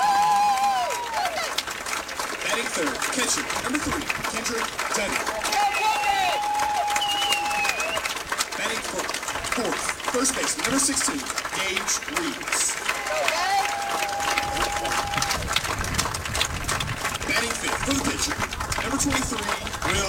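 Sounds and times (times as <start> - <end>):
ballpark crowd cheering and clapping: 0.0 - 20.0
speech: 2.8 - 5.7, 9.6 - 12.8, 14.8 - 15.8, 17.4 - 20.0
high whistles: 5.7 - 8.1.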